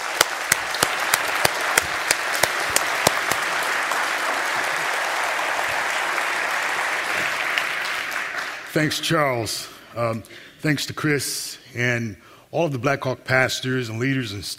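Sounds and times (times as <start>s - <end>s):
church audience applauding a pastor welcomed to the stage: 0.0s - 9.0s
speech: 8.8s - 14.5s.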